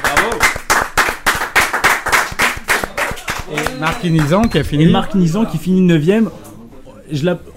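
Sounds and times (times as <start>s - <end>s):
small audience applause: 0.0s - 4.5s
speech: 3.8s - 6.4s, 7.1s - 7.5s.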